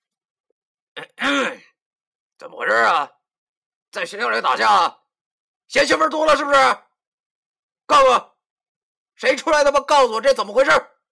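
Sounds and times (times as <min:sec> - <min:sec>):
speech: 0:01.0 - 0:01.6, 0:02.4 - 0:03.2, 0:03.9 - 0:05.0, 0:05.7 - 0:06.9, 0:07.9 - 0:08.3, 0:09.2 - 0:10.9
man clearing his throat: 0:01.0 - 0:01.8.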